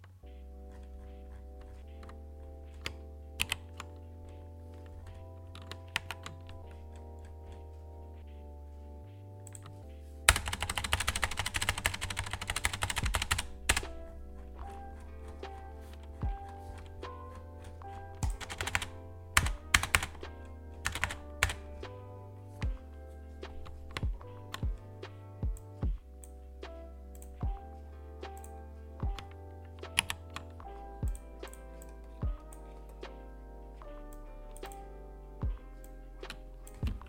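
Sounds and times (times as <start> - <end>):
battletron keyboard typing with black switches: 0.0 - 27.6, 28.2 - 33.2, 33.8 - 35.0, 35.8 - 37.0.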